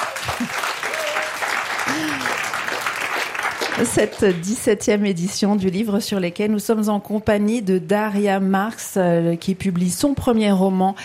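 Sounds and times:
live audience applauding at the Le Livre sur les quais book festival in Morges: 0.0 - 4.6
speech: 3.8 - 11.0.

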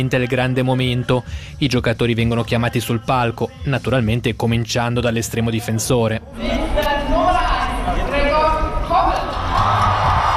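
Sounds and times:
speech: 0.0 - 6.8
crowd cheering and shouting at fan event: 6.3 - 10.3
people clapping: 8.8 - 10.3.

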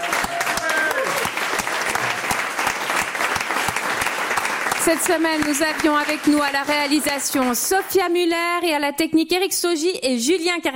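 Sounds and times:
audience applause: 0.0 - 8.1
speech: 4.8 - 10.7.

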